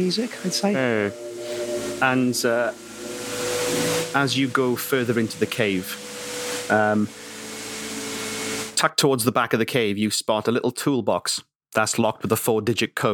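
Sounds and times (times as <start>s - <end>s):
speech: 0.0s - 1.4s, 2.0s - 2.8s, 3.7s - 6.1s, 6.7s - 7.2s, 8.9s - 13.1s
roaring waterfall inside a cave: 1.9s - 8.8s.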